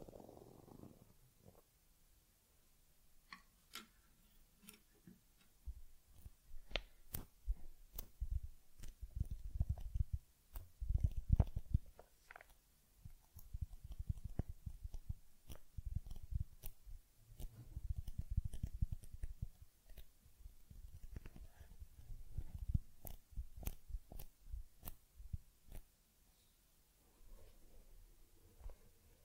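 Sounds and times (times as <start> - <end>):
sharp clicks and crisp scratches: 3.3 - 25.9
soft rubbing and brushing strokes on a teddy: 4.1 - 29.2.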